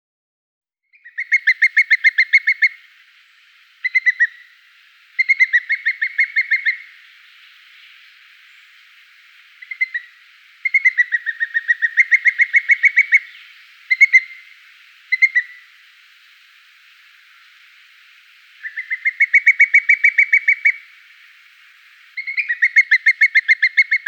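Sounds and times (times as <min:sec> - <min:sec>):
booted eagle calling with high clear whistled notes: 0:01.0 - 0:24.0.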